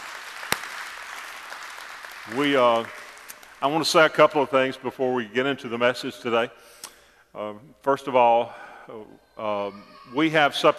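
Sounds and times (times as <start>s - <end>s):
audience clapping in praise: 0.0s - 4.0s
speech: 2.3s - 3.0s, 3.6s - 6.8s, 7.4s - 10.7s.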